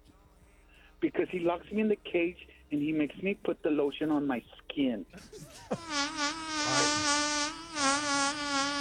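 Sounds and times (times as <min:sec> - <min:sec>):
speech: 0:01.0 - 0:06.1
laughter: 0:05.2 - 0:06.1
fart sound effect: 0:05.8 - 0:08.7.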